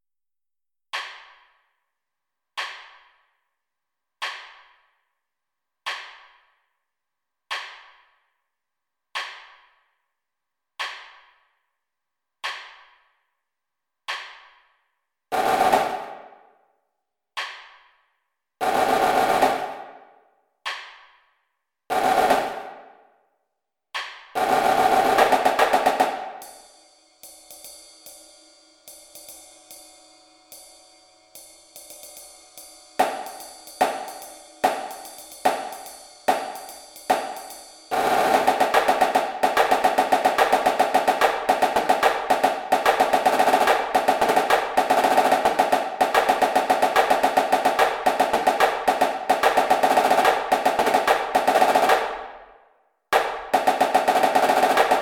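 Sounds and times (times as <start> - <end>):
snare drum: 15.3 - 16.4, 18.6 - 20.0, 21.9 - 23.0, 24.4 - 52.4, 53.2 - 55.0.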